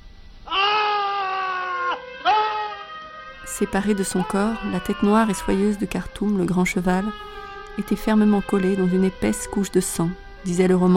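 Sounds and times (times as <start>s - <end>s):
man screaming in horror in his villa: 0.5s - 3.2s
speech: 3.5s - 10.9s.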